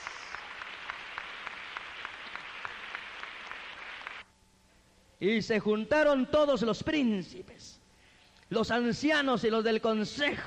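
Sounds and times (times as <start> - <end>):
audience applause: 0.0 - 4.3
speech: 5.2 - 7.8, 8.5 - 10.4.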